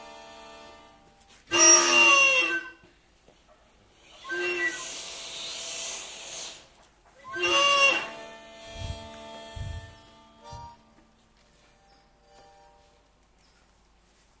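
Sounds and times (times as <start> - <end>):
wind instrument: 1.4 - 2.9, 4.0 - 6.6, 7.2 - 11.0.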